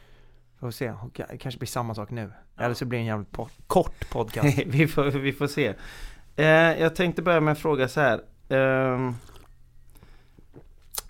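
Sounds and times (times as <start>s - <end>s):
speech: 0.6s - 9.3s
coffee slurping and sipping: 8.9s - 9.6s.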